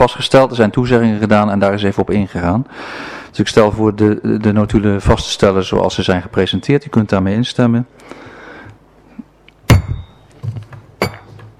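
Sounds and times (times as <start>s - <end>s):
speech: 0.0s - 8.3s
chairman's wooden gavel striking: 9.7s - 11.5s.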